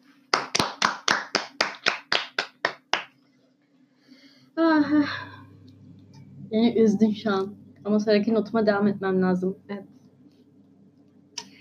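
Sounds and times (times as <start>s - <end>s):
hand clapping: 0.3s - 3.2s
speech: 4.9s - 5.3s, 6.5s - 9.8s.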